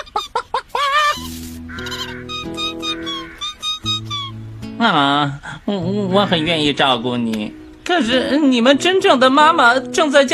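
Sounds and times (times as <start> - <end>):
chicks peeping: 0.0 - 4.4
speech: 4.8 - 10.3.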